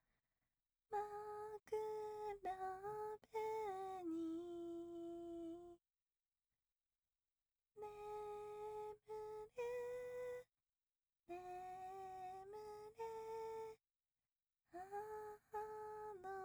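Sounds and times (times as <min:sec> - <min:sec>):
lullaby: 0:00.9 - 0:05.8, 0:07.8 - 0:10.5, 0:11.3 - 0:13.8, 0:14.7 - 0:16.4.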